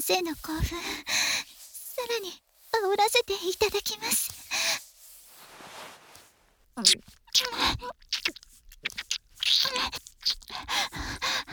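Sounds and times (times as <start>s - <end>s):
speech: 0.0s - 1.2s, 2.0s - 4.4s, 6.8s - 8.4s
wet ear-licking ASMR mouth sounds: 6.2s - 11.5s.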